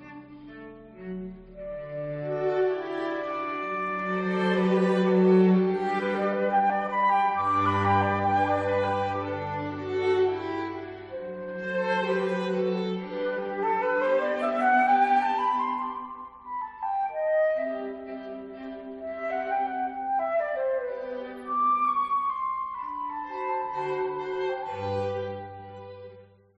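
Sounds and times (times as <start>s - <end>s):
quartet for flute and strings: 0.0s - 26.4s.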